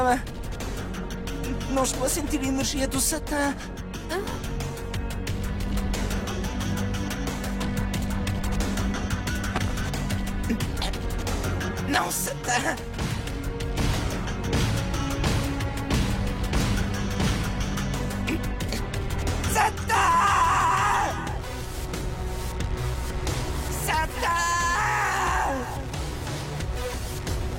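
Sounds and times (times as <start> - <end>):
speech: 0.1 - 0.4, 1.7 - 4.6, 11.9 - 13.1
loud dense wall of music: 4.6 - 27.5
person screaming desperately in anguish: 19.6 - 21.4, 23.9 - 25.9.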